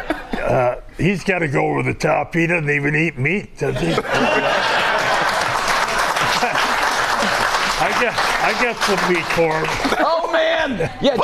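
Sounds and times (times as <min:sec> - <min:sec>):
speech: 0:00.5 - 0:04.8, 0:07.8 - 0:11.2
laughter: 0:03.7 - 0:11.2
crowd applauding: 0:04.2 - 0:10.0.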